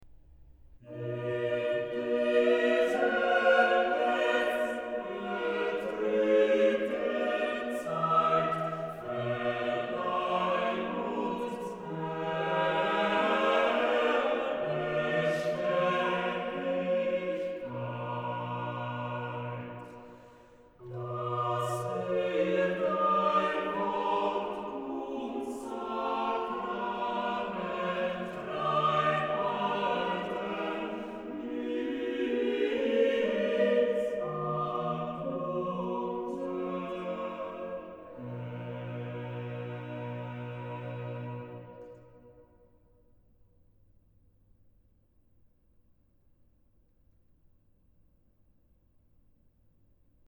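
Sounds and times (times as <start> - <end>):
organ chorale: 0.8 - 42.3.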